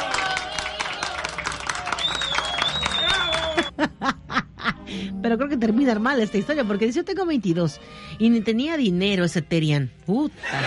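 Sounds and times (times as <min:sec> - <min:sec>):
cheering: 0:00.0 - 0:03.7
applause: 0:00.0 - 0:03.8
high whistle-like tone: 0:02.0 - 0:03.7
laughter: 0:03.6 - 0:04.8, 0:10.4 - 0:10.6
speech: 0:05.2 - 0:10.6.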